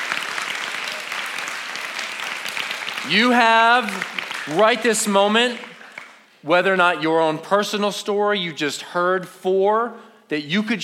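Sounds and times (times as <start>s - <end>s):
audience applauding: 0.0s - 6.3s
speech: 3.0s - 5.7s, 6.4s - 10.8s.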